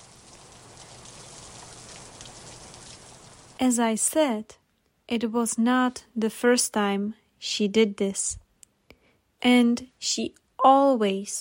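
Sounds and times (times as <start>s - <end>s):
raindrops falling on trees: 0.0s - 3.6s
speech: 3.6s - 8.4s, 9.4s - 11.4s.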